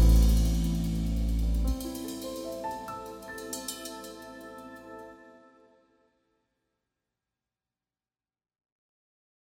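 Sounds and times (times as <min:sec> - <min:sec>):
jazz trio playing: 0:00.0 - 0:05.4.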